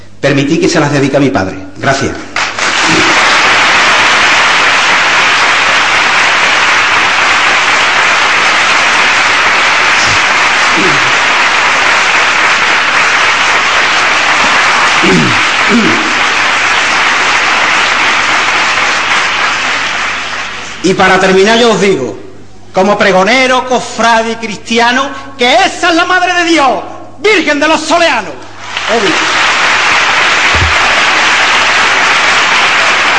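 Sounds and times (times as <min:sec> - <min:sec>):
speech: 0:00.3 - 0:02.3, 0:15.0 - 0:16.0, 0:20.8 - 0:22.2, 0:22.8 - 0:29.3
audience applause: 0:02.4 - 0:20.8, 0:28.6 - 0:33.1.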